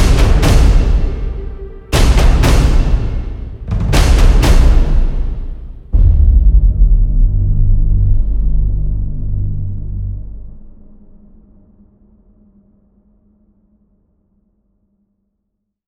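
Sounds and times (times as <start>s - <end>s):
epic action and adventure music: 0.0s - 11.1s.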